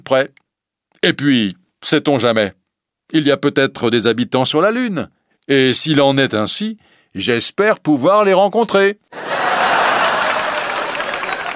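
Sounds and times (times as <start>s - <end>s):
speech: 0.1s - 0.4s, 1.0s - 9.7s
audience laughing at a joking line in a speech: 9.2s - 11.5s.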